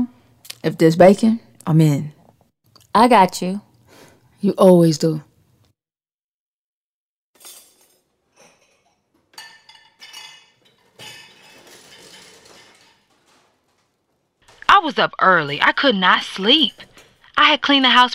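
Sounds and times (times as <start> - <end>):
speech: 0.6 - 2.2, 2.9 - 3.7, 4.4 - 5.3, 14.9 - 18.1
dishes and cutlery clinking while making breakfast: 7.4 - 14.8, 16.4 - 17.3.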